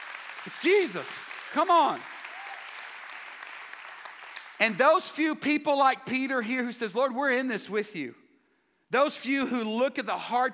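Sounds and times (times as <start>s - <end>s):
audience clapping: 0.0s - 4.8s
speech: 0.4s - 2.1s, 4.6s - 8.2s, 8.9s - 10.5s.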